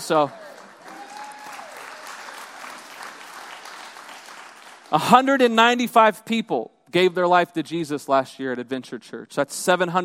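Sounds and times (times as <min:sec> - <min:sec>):
large crowd clapping: 0:00.0 - 0:05.4
speech: 0:00.1 - 0:00.4, 0:04.9 - 0:10.0
faint cheering: 0:00.2 - 0:02.8.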